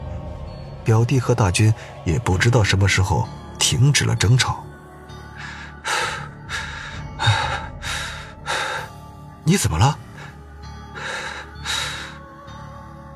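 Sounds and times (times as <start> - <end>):
speech: 0.8 - 4.7, 9.5 - 10.0
heavy panting breaths: 5.3 - 9.1, 10.0 - 12.2.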